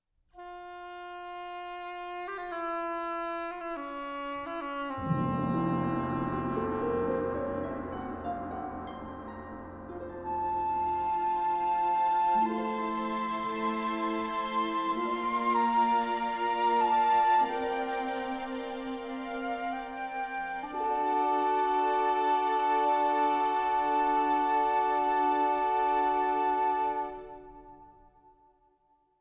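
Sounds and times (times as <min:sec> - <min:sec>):
orchestra: 0:00.4 - 0:28.4
choir singing: 0:05.0 - 0:27.8.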